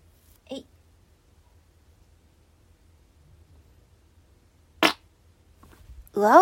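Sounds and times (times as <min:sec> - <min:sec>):
farts after eating lots of cake at a buffet: 0:04.8 - 0:05.0.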